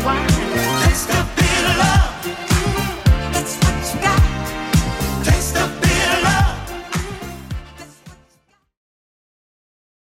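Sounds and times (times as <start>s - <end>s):
80s drum beat at 108 bpm: 0.3s - 7.7s.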